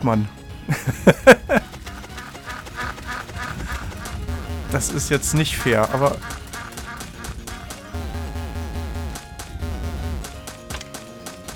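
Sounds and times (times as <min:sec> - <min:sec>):
speech: 0:00.0 - 0:01.7, 0:04.7 - 0:06.4
laughter: 0:00.7 - 0:04.2
video game duck quacking: 0:01.4 - 0:09.1.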